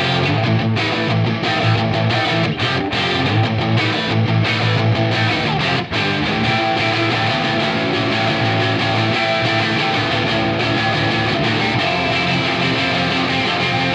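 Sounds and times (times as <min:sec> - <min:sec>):
guitar: 0:00.0 - 0:13.9.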